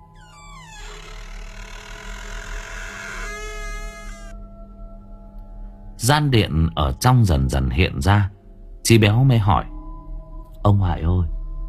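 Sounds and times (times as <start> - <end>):
old wooden temple door creaking open: 0.0 - 4.4
speech: 6.0 - 9.7, 10.6 - 11.3.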